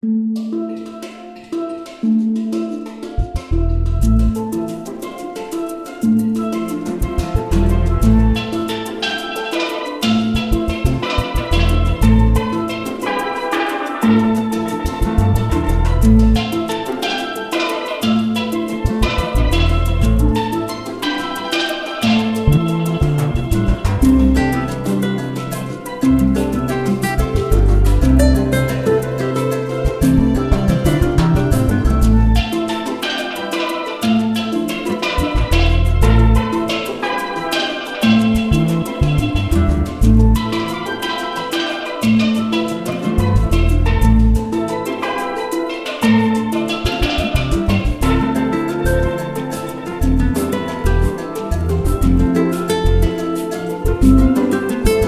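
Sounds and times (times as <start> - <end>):
steel pan: 0.4 - 55.0.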